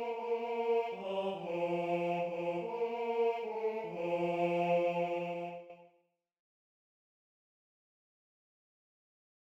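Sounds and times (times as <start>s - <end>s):
second tenor voice singing: 0.0s - 5.8s.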